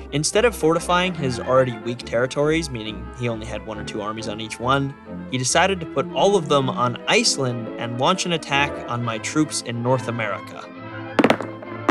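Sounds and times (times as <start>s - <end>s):
speech: 0.1s - 10.8s
dice rattling during a board game of armies and territories: 11.2s - 11.8s.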